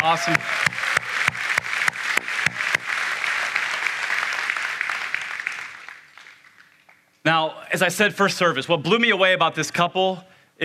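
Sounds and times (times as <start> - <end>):
speech: 0.0 - 0.8, 7.3 - 10.6
church congregation applauding a couple's welcome: 0.0 - 7.2.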